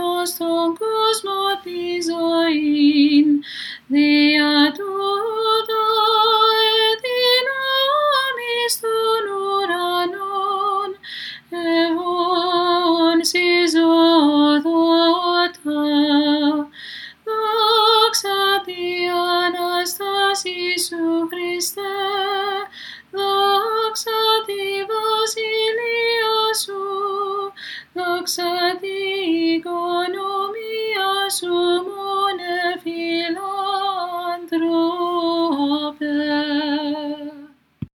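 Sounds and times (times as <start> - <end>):
Greek Orthodox hymn chant: 0.0 - 37.6.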